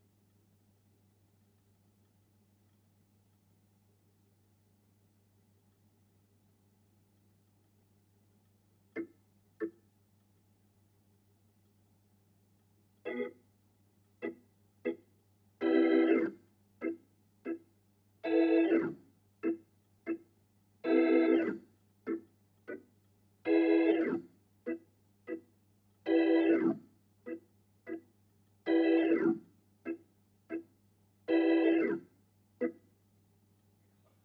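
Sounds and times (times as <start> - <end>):
Hammond organ: 13.0 - 13.4, 15.6 - 17.6, 18.2 - 20.2, 20.8 - 22.8, 23.4 - 25.4, 26.1 - 28.0, 28.6 - 30.6, 31.3 - 32.0.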